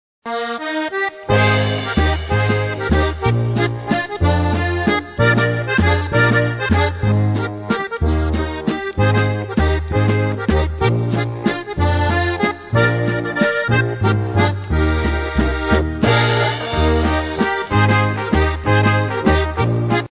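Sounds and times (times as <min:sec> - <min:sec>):
waltz music: 0:00.3 - 0:20.0.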